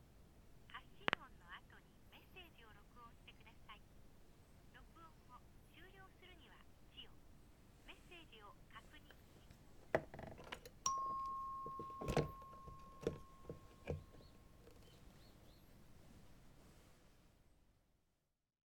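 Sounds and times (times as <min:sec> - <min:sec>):
black telephone dialing: 0:10.0 - 0:15.0.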